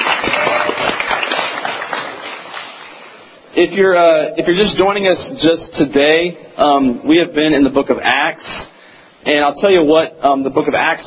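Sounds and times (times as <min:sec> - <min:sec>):
audience applause: 0:00.0 - 0:03.3
speech: 0:03.6 - 0:11.0.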